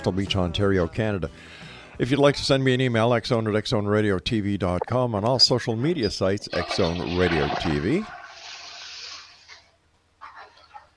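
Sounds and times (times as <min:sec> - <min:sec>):
speech: 0:00.0 - 0:08.2
toilet flushing: 0:06.4 - 0:09.7.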